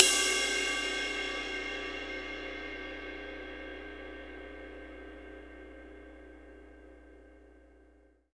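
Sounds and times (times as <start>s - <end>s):
ride cymbal with reverb: 0.0s - 6.2s.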